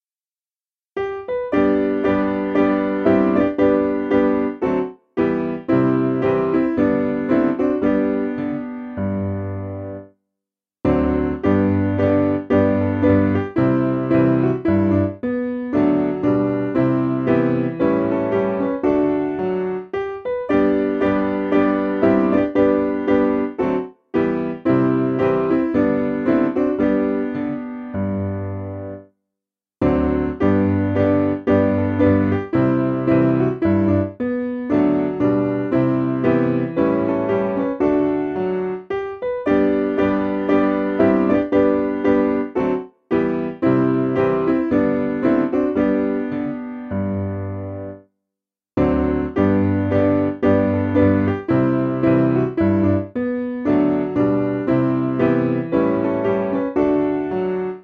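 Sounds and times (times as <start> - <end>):
piano: 0.9 - 10.2, 10.8 - 29.2, 29.8 - 48.2, 48.8 - 57.8.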